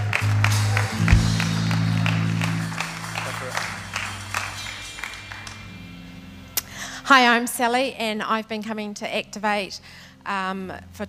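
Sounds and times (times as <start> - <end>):
audience clapping: 0.0 - 6.2
speech: 7.1 - 11.0.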